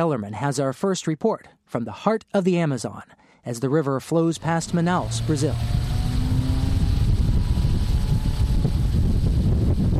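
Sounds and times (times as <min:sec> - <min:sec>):
speech: 0:00.0 - 0:05.9
motorboat engine rumble crossing a river: 0:04.4 - 0:09.9
gusty wind buffeting: 0:04.6 - 0:09.9.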